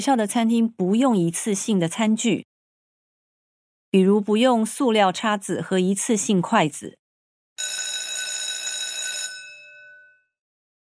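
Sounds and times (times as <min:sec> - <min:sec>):
speech: 0:00.0 - 0:02.5, 0:03.9 - 0:07.0
school bell ringing: 0:07.6 - 0:10.3.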